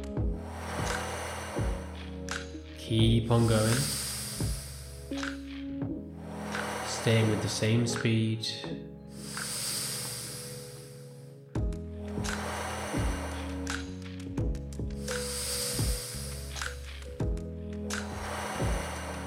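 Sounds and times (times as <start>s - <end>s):
slow deep breathing in and out: 0.2s - 2.5s, 3.4s - 5.4s, 6.1s - 7.9s, 9.0s - 14.0s, 14.9s - 17.2s, 17.9s - 19.2s
speech: 2.9s - 4.0s, 7.0s - 8.9s.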